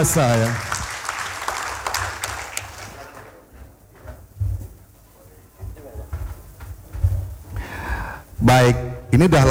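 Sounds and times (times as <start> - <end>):
speech: 0.0 - 0.7, 8.4 - 9.5
audience clapping: 0.0 - 3.7.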